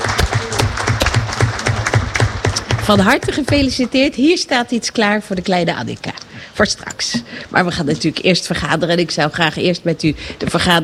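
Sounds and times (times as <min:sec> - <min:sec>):
meeting audience applause congratulating a new father: 0:00.0 - 0:03.7
speech: 0:02.9 - 0:10.8.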